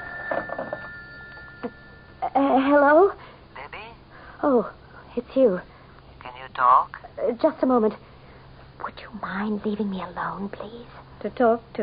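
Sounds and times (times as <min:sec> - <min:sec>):
telephone ringing faintly in short bell bursts: 0:00.0 - 0:02.2
speech: 0:02.4 - 0:03.2, 0:04.4 - 0:05.7, 0:06.6 - 0:08.1, 0:09.0 - 0:11.8.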